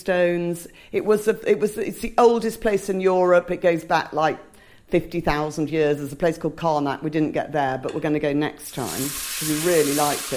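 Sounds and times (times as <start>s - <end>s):
speech: 0.0s - 10.3s
gnocchi sizzling in a hot pan: 8.8s - 10.3s.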